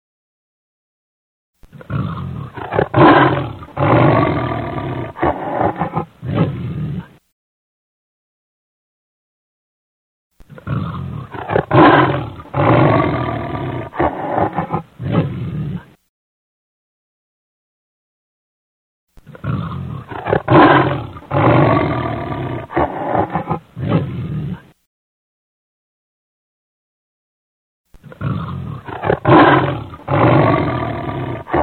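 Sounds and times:
lion giving deep throaty roars: 1.7 - 7.2, 10.5 - 16.0, 19.2 - 24.8, 28.0 - 31.6.

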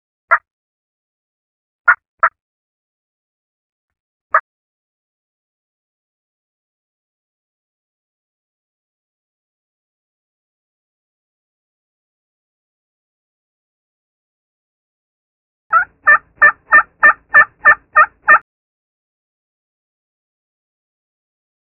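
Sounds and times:
wild turkey distress calling: 15.7 - 18.4.

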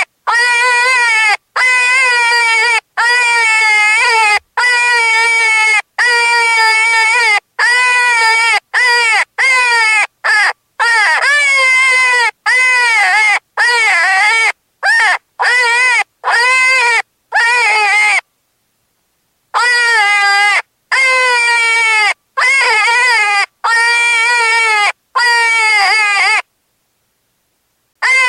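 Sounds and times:
cottontail rabbit distress screaming: 0.0 - 18.2, 19.6 - 26.4, 28.0 - 28.2.

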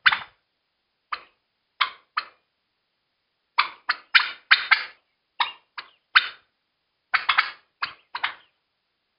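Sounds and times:
turkey panic calling: 0.0 - 0.4, 3.6 - 6.5, 7.1 - 8.6.

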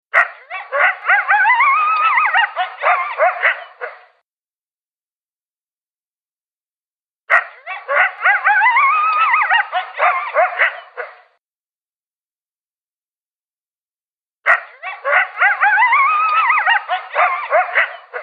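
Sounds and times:
coyote yipping and howling: 0.2 - 4.0, 7.3 - 11.2, 14.5 - 18.2.

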